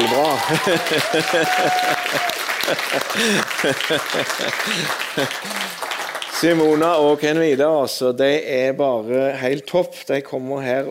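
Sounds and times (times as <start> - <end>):
audience applause: 0.0 - 7.4
speech: 0.2 - 10.8
laughter: 0.3 - 5.8.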